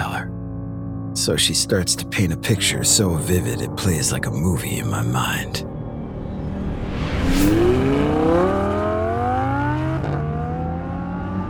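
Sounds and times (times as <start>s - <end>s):
speech: 1.2s - 5.7s
black Datsun 240Z engine roaring: 5.7s - 11.4s.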